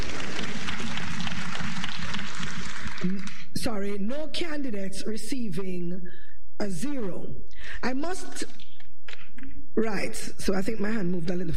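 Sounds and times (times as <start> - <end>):
audience clapping: 0.0 - 3.6
speech: 3.0 - 8.6, 9.8 - 11.5.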